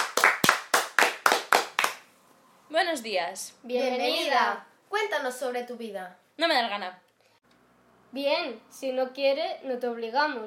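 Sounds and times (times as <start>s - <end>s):
audience clapping on a Spanish talk show: 0.0s - 2.1s
speech: 2.8s - 7.0s, 8.1s - 10.4s.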